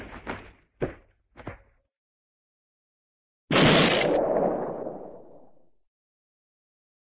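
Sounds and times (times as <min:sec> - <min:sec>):
cartoon spacey meteor crash: 0:03.5 - 0:05.7.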